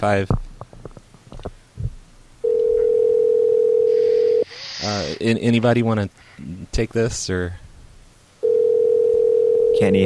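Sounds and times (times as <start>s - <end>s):
speech: 0.0s - 0.5s, 4.8s - 7.6s, 9.8s - 10.0s
telephone dial tone while placing a call: 2.4s - 4.4s, 8.4s - 9.8s.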